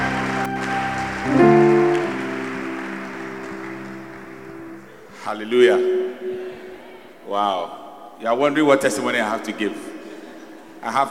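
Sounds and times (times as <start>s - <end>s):
audience clapping: 0.0s - 6.6s
speech: 1.2s - 1.4s, 5.3s - 6.5s, 7.3s - 9.9s, 10.8s - 11.1s.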